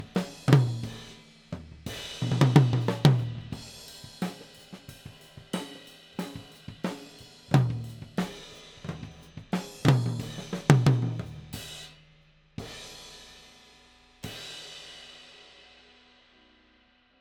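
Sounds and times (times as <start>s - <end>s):
tom drum: 0.0s - 12.0s.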